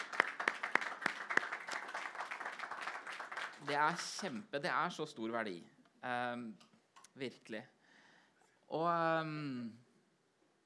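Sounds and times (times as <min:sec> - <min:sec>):
audience applause: 0:00.0 - 0:04.2
speech: 0:03.7 - 0:07.8, 0:08.7 - 0:09.8.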